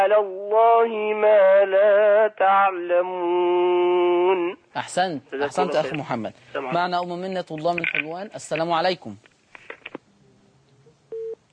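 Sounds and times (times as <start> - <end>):
speech: 0.1 - 9.3
telephone busy tone after a call-in line disconnects: 11.1 - 11.4.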